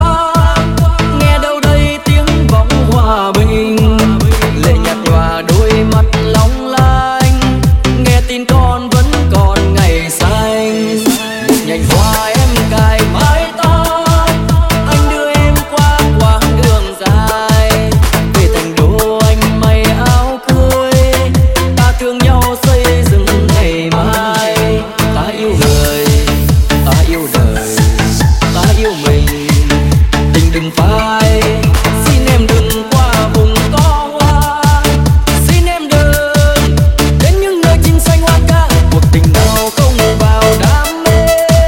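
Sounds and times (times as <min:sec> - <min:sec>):
remix music: 0:00.0 - 0:41.6.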